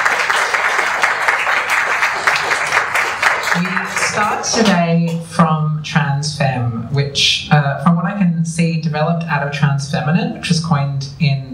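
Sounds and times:
crowd applause: 0:00.0 - 0:04.8
speech: 0:03.6 - 0:11.5.

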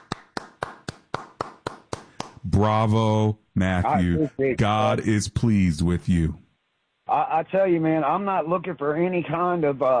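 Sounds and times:
one person clapping hands: 0:00.0 - 0:02.4
speech: 0:02.4 - 0:06.4, 0:07.1 - 0:09.9.

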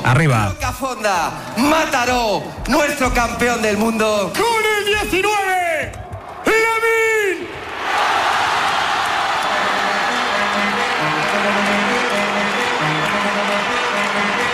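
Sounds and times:
speech: 0:00.1 - 0:06.0
stadium crowd ovation for a player: 0:04.3 - 0:14.5
shouts: 0:04.4 - 0:10.0.

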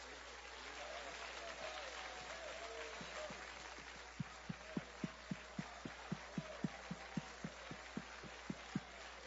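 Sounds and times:
audience clapping: 0:00.0 - 0:09.2.

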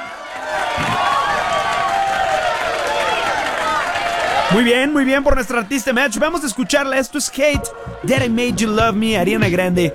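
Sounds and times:
applause: 0:00.0 - 0:04.5
speech: 0:04.5 - 0:09.9.

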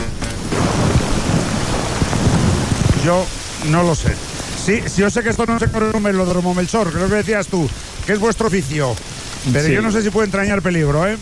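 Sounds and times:
hail: 0:00.0 - 0:11.1
thunderstorm with heavy rain: 0:00.0 - 0:11.1
speech: 0:03.0 - 0:11.1.

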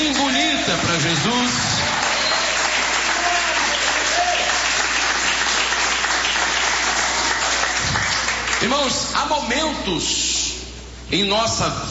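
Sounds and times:
audience applause: 0:00.0 - 0:08.7
speech: 0:00.7 - 0:01.7, 0:08.6 - 0:10.4, 0:11.1 - 0:11.8.

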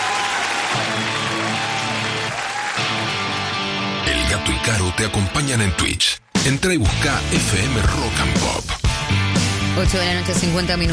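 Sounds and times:
applause: 0:00.0 - 0:03.9
speech: 0:04.3 - 0:09.2, 0:09.8 - 0:10.9.

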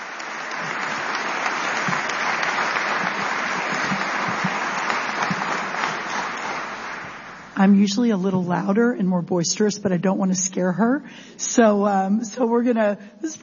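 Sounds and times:
audience applause: 0:00.0 - 0:07.6
speech: 0:07.6 - 0:13.4.

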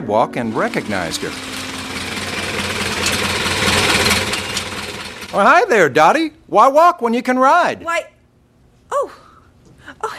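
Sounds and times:
speech: 0:00.1 - 0:01.7, 0:05.3 - 0:08.1
old Model A coupe car engine running: 0:00.4 - 0:05.6.

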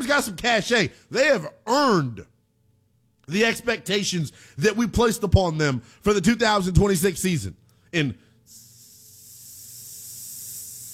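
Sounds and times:
speech: 0:00.0 - 0:02.3, 0:03.3 - 0:08.6
urinating sound effect: 0:08.5 - 0:10.9.

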